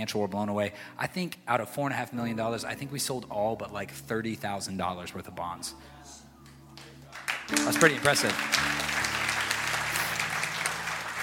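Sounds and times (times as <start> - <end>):
speech: 0.0 - 6.2, 7.5 - 8.8
audience clapping: 6.8 - 11.2.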